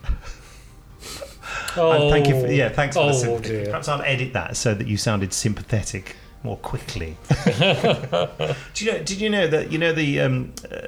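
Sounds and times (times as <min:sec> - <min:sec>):
sniffing through the nose: 0:00.0 - 0:03.9, 0:08.4 - 0:08.8
laughter: 0:00.0 - 0:10.8
speech: 0:01.8 - 0:10.8.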